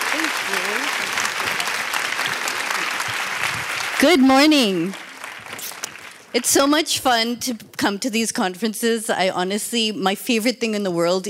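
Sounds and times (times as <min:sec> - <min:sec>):
audience applause welcoming a speaker at a women's conference in Texas: 0:00.0 - 0:06.8
speech: 0:04.0 - 0:05.0, 0:06.3 - 0:11.2.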